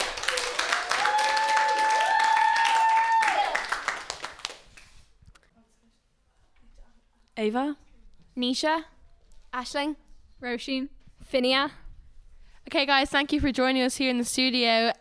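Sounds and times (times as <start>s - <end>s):
round of applause: 0.0s - 5.1s
speech: 7.4s - 8.9s, 9.5s - 11.8s, 12.7s - 14.9s.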